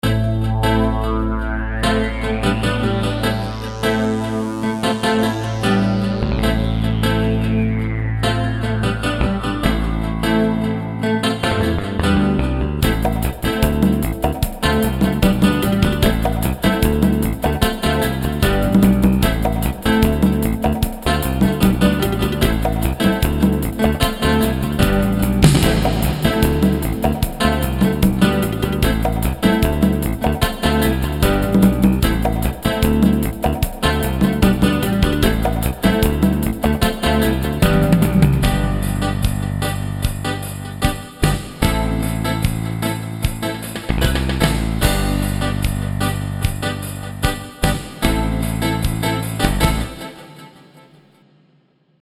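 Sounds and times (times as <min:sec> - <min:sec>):
reggae music: 0:00.0 - 0:50.9.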